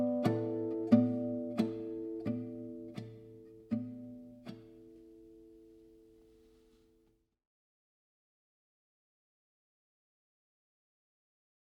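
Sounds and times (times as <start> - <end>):
instrumental music: 0.0 - 6.8.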